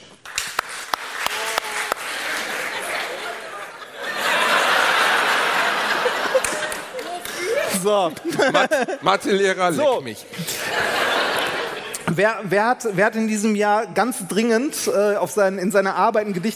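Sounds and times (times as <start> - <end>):
audience clapping hands: 0.0 - 8.1
laughter: 1.3 - 12.5
speech: 7.9 - 11.0, 12.1 - 16.5.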